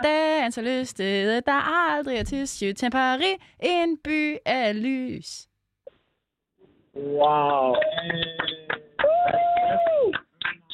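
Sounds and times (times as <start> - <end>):
speech: 0.0 - 5.5, 7.0 - 10.2
hand claps: 7.2 - 10.7.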